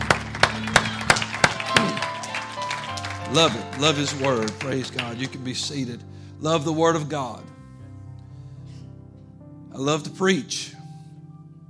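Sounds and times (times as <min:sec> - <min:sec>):
audience clapping hands: 0:00.0 - 0:05.8
speech: 0:03.3 - 0:07.5, 0:09.8 - 0:10.8.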